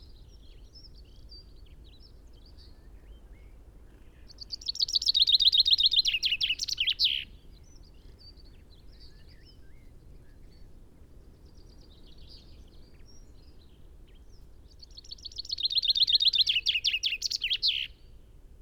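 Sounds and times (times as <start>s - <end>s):
Common Chaffinch Fringilla coelebs in Ryedale: 4.4s - 7.3s, 14.9s - 18.0s.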